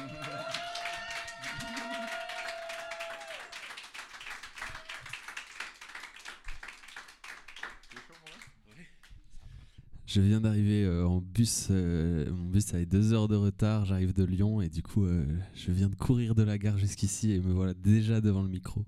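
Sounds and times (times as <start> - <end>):
audience applause: 0.0 - 8.8
speech: 10.1 - 18.8.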